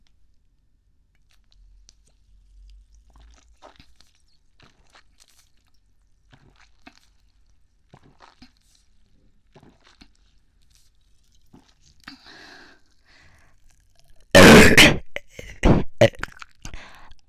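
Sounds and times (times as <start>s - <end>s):
burping: 14.4s - 17.1s.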